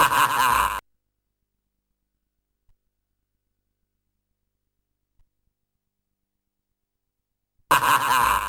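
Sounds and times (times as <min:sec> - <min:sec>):
person laughing: 0:00.0 - 0:00.8, 0:07.7 - 0:08.4.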